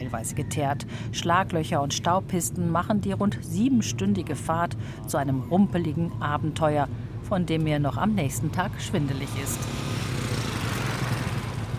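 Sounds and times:
speech: 0:00.1 - 0:10.1
motorcycles passing on road: 0:08.2 - 0:11.7.

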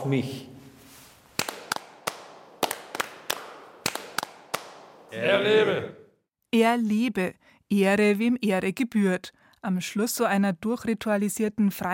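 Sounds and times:
speech: 0:00.0 - 0:00.5, 0:05.1 - 0:11.9
rhythmic ritual hand clapping: 0:01.4 - 0:05.1.

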